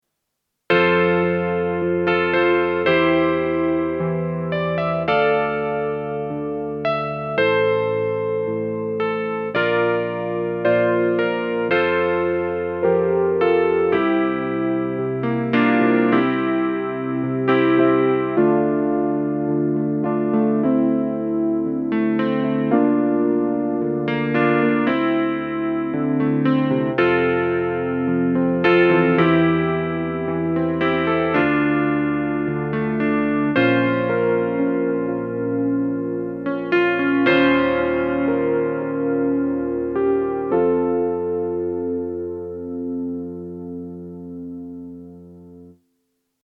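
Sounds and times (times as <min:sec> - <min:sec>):
CP 70 electric piano through Dimension D preset 4: 0:00.7 - 0:45.9.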